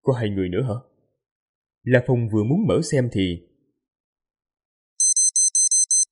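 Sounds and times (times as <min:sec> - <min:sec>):
speech: 0:00.0 - 0:00.9, 0:01.8 - 0:03.5
watch notification beeps: 0:05.0 - 0:06.1.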